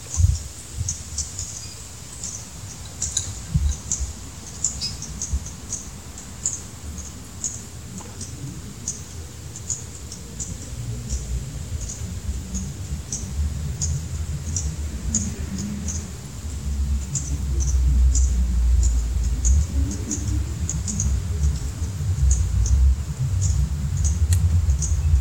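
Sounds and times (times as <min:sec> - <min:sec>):
juncos cheeping while foraging in a back yard: 0:00.1 - 0:25.2
low uneven rumble: 0:07.8 - 0:25.2.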